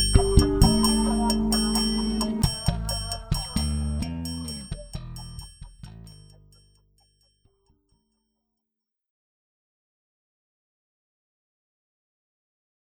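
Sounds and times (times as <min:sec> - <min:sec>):
suspense music: 0:00.0 - 0:05.7.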